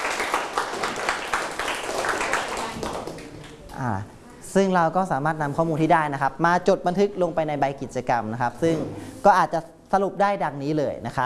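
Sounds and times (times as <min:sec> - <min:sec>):
classroom applause: 0:00.0 - 0:03.7
speech: 0:03.8 - 0:11.2.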